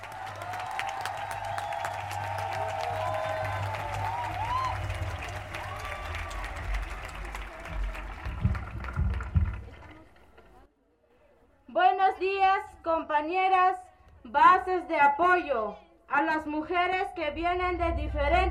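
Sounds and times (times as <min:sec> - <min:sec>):
audience applause: 0:00.0 - 0:10.7
speech: 0:13.0 - 0:18.4.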